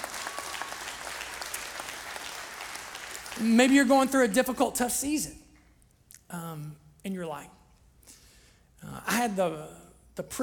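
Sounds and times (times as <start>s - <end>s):
audience clapping: 0.0s - 4.6s
speech: 3.4s - 5.4s, 6.6s - 7.6s, 8.8s - 10.4s.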